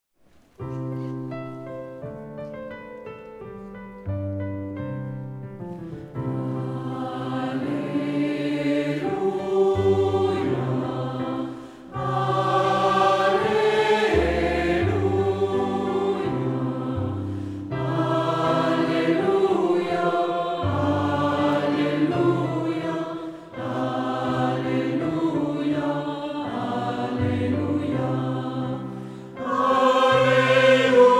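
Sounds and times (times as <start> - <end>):
canon music: 0.6 - 31.1.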